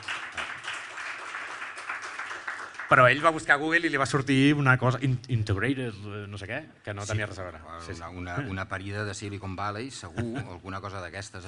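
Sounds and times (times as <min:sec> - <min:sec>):
audience applause: 0:00.0 - 0:03.4
speech: 0:02.9 - 0:11.4.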